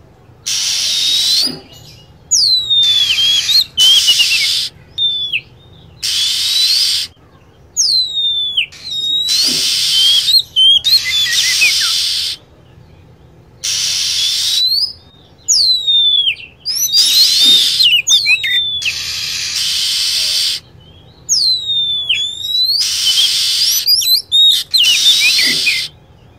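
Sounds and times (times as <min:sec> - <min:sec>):
lovebird calls: 0:00.4 - 0:12.5, 0:13.6 - 0:26.2.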